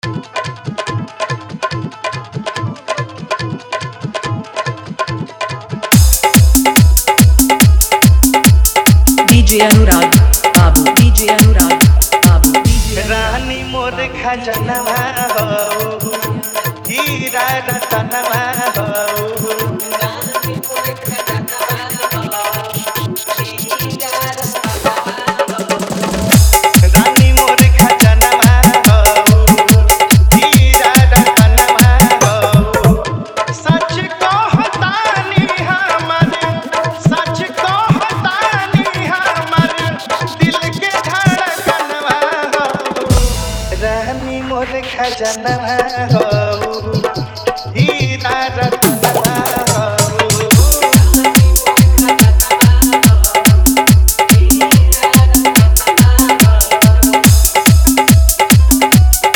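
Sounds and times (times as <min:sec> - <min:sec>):
hard dholki bass mix: 0:00.0 - 0:59.3.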